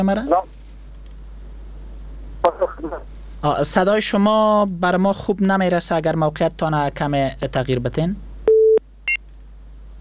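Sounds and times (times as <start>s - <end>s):
speech: 0.0s - 0.6s, 2.5s - 8.3s
telephone line tone beeps after a dropped call: 8.5s - 9.2s.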